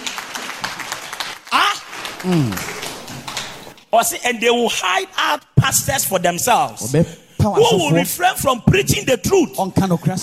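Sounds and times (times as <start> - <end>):
audience clapping for the pastor: 0.0 - 3.9
speech: 2.2 - 2.7, 3.9 - 10.2.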